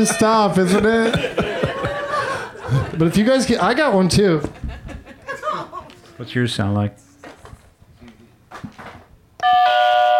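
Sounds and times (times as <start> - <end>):
speech: 0.0 - 1.8, 2.7 - 4.6, 6.2 - 7.0
laughter: 0.0 - 6.1
doorbell chime: 9.4 - 10.1.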